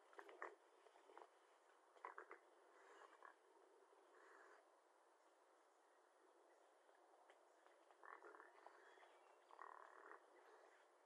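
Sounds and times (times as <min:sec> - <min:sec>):
raccoon giving harsh chittering and squealing calls: 0:00.1 - 0:01.3, 0:01.9 - 0:04.6, 0:07.0 - 0:10.9.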